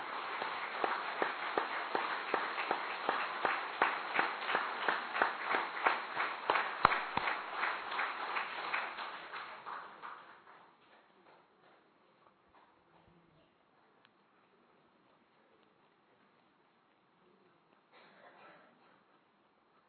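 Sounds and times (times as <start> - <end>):
group clapping hands loudly: 0.0 - 11.9.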